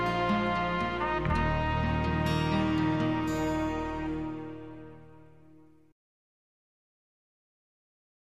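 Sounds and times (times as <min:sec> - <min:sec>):
acoustic music: 0:00.0 - 0:05.9.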